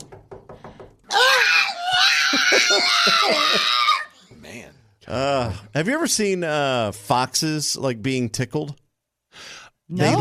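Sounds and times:
pug screaming: 1.1 - 4.2
speech: 5.1 - 8.8, 9.9 - 10.1.

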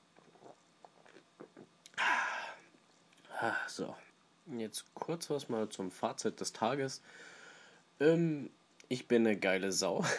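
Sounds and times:
sipping beer from a can: 0.2 - 2.6
speech: 3.4 - 7.4, 8.0 - 10.1.

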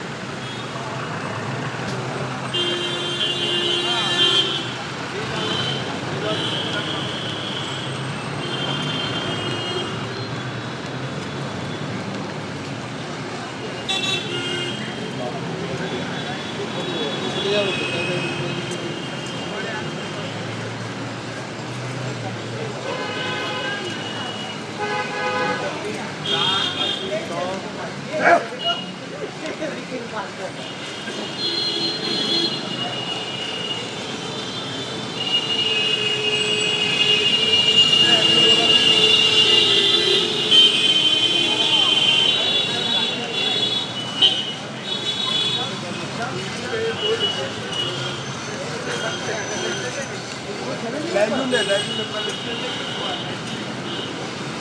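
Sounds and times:
boulevard noise in Kolkata: 0.0 - 54.5.

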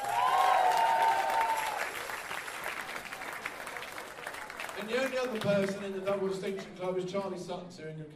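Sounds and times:
audience cheering: 0.0 - 4.7
audience clapping: 0.0 - 6.6
speech: 4.8 - 8.1.

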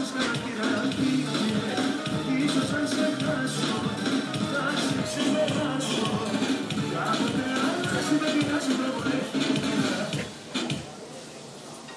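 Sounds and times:
awkward restaurant song: 0.0 - 11.9.

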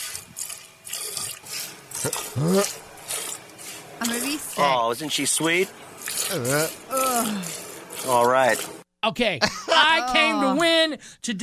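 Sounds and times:
milk squirting into a pail during hand milking: 0.0 - 8.8
speech: 2.0 - 2.9, 4.0 - 11.4.

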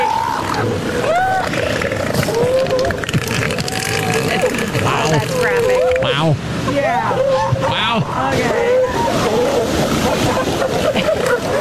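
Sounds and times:
seals calling during mating: 0.0 - 11.5
steady rushing underwater-style noise: 0.0 - 11.5
laughter: 8.9 - 11.5.

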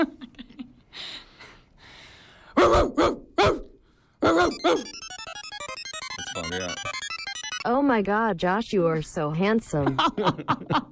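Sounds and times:
person imitating dog barks: 2.6 - 4.8
speech: 7.9 - 10.8
laughter: 9.8 - 10.8.

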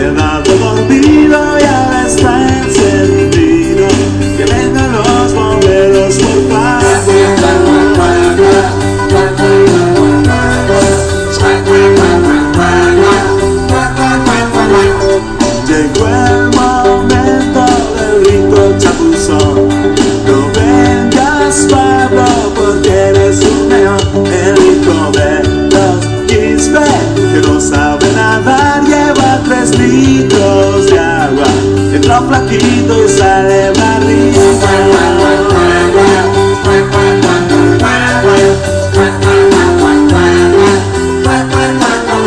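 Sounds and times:
Peruvian rock music playing in traffic: 0.0 - 42.2.

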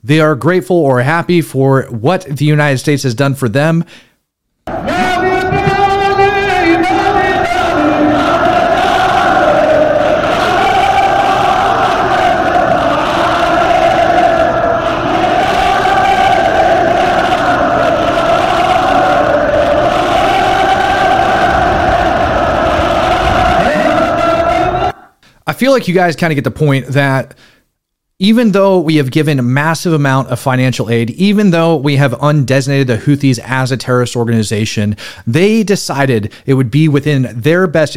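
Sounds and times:
speech: 0.0 - 4.1, 4.7 - 5.7, 25.6 - 27.5, 28.2 - 37.9
large crowd at a rally chanting and roaring: 4.7 - 25.2.

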